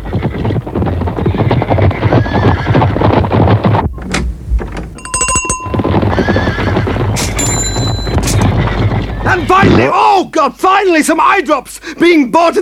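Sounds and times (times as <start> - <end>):
clatter of many zebra hooves: 0.0 - 9.9
herd of zebras whinnying: 0.0 - 9.9
short bright ringing tones: 5.0 - 6.2, 7.4 - 8.4
speech: 9.7 - 12.6.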